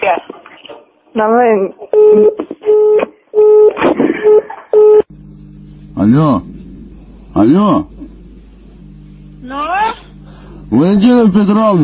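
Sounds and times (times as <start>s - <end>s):
speech: 1.2s - 2.4s, 6.1s - 6.5s, 7.4s - 7.9s, 10.7s - 11.8s
telephone dialing tones: 2.0s - 5.0s
low buzzing hum: 5.0s - 11.8s.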